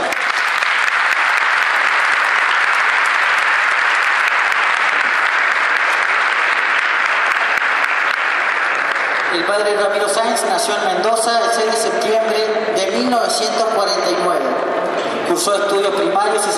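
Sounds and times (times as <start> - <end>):
loud audience applause: 0.0 - 10.2
speech: 9.5 - 16.5.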